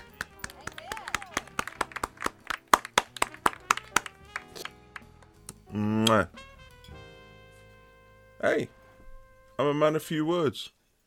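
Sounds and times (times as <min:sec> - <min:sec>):
scattered guests clapping for the chef at a small post-COVID gathering: 0:00.0 - 0:05.4
speech: 0:05.7 - 0:06.5, 0:08.4 - 0:08.8, 0:09.6 - 0:10.8.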